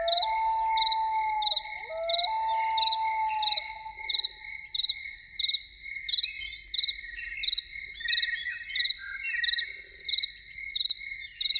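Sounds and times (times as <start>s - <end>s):
loon wailing: 0.0s - 4.5s
insects chirping: 0.0s - 11.0s.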